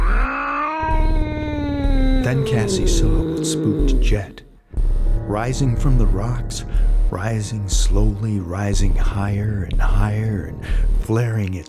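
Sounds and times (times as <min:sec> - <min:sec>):
cat growling: 0:00.0 - 0:04.5
speech: 0:02.3 - 0:04.5, 0:05.3 - 0:11.6.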